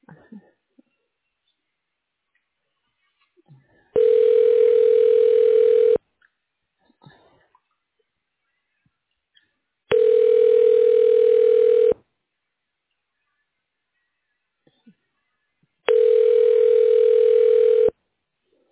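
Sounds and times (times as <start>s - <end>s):
telephone ringback tone while a call is transferred to voicemail: 4.0s - 6.0s, 9.9s - 12.0s, 15.9s - 17.9s.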